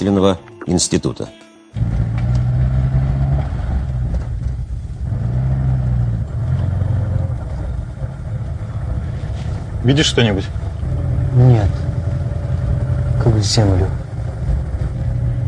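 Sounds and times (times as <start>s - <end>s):
speech: 0.0s - 1.9s, 9.8s - 10.6s, 11.4s - 11.8s, 13.2s - 14.0s
car engine humming as the car drives toward the outskirts: 1.8s - 15.4s.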